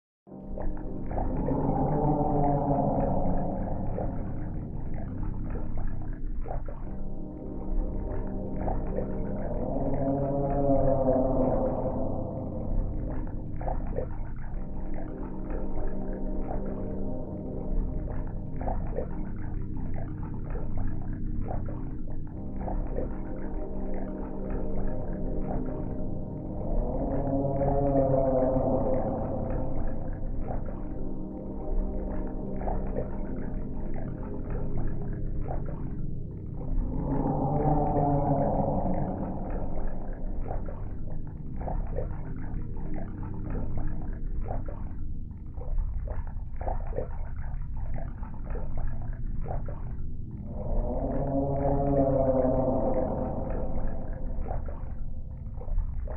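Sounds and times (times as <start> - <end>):
underwater background sound: 0.3 - 56.1.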